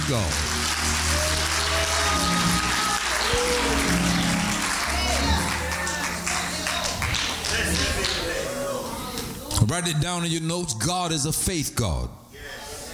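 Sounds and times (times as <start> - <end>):
audience clapping hands: 0.0 - 9.3
speech: 0.1 - 0.6, 9.6 - 12.6.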